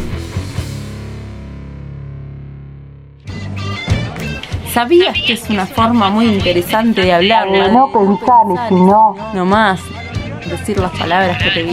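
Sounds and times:
acoustic music with strummed layered notes: 3.3s - 11.7s
speech: 4.8s - 11.7s.

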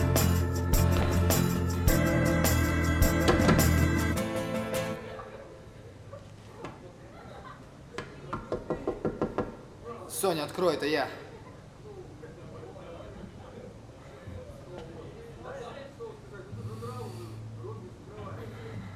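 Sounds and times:
loud music: 0.0s - 5.2s
knocking on a dormitory room door: 8.4s - 9.6s
speech: 10.3s - 11.2s.

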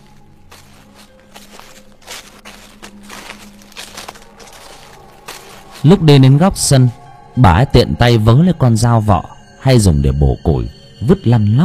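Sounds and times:
footsteps rustling on dry leaves: 0.0s - 7.1s
speech: 5.8s - 11.6s.

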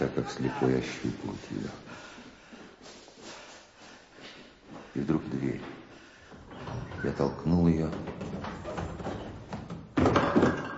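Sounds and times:
speech: 0.0s - 2.1s, 5.0s - 5.8s, 7.0s - 8.2s
person tumbling down stairs: 5.6s - 10.7s.

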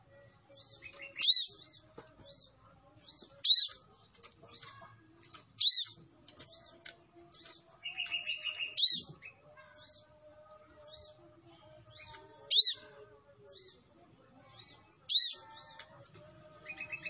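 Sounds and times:
sunbird energetic training song with sharp high chirps: 0.5s - 3.8s, 5.6s - 10.1s, 11.9s - 13.9s, 14.5s - 15.8s.

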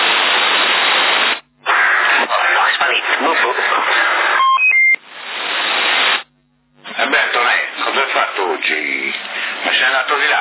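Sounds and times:
CB radio hiss and static: 0.0s - 10.3s
crackly band-limited CB radio voices talking: 1.6s - 4.6s, 6.8s - 10.3s
CB radio call beep on a channel in Sassari: 4.3s - 5.0s.

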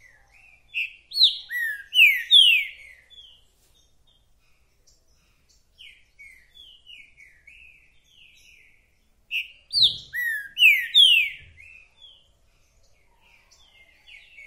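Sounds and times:
green-winged saltator singing descending and sweeping whistles: 0.8s - 3.0s, 9.3s - 11.9s.

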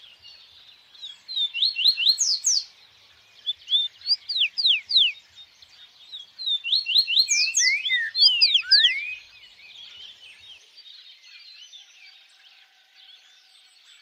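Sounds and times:
bird whistling song: 1.0s - 10.6s.

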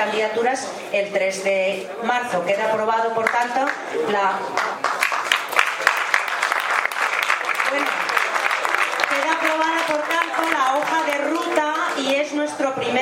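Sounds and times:
speech: 0.0s - 4.8s
audience applause after vote result: 4.5s - 12.3s.

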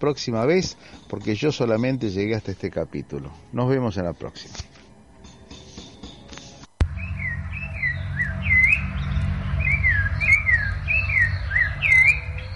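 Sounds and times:
speech: 0.0s - 4.8s
thrush (zorzal) singing: 6.8s - 12.5s.

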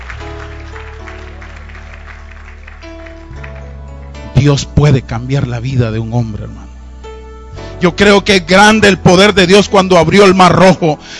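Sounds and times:
audience applauding: 0.0s - 4.3s
sustained keyboard chords: 0.0s - 11.1s
speech: 4.4s - 6.7s, 7.8s - 11.1s.

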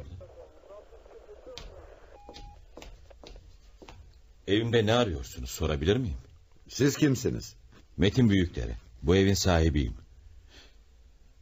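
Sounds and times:
faint indistinct voices murmuring: 0.0s - 2.8s
electronic tone from an open telephone receiver: 1.7s - 2.7s
speech: 4.5s - 10.0s.

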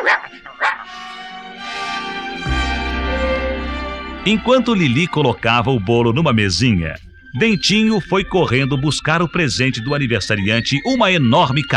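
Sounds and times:
small mongrel dog barking: 0.0s - 1.0s
steady musical tones: 0.0s - 11.7s
deep hum: 2.4s - 8.9s
speech: 4.2s - 11.7s.

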